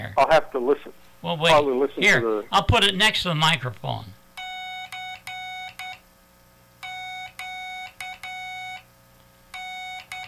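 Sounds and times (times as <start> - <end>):
low constant hum: 0.0 - 10.2
speech: 0.1 - 4.2
Titanic's Morse code radio signal: 4.4 - 6.1, 6.8 - 8.9, 9.5 - 10.2.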